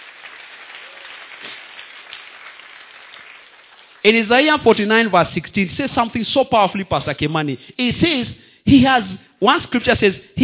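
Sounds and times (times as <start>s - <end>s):
audience clapping: 0.0s - 4.6s
speech: 4.0s - 10.4s.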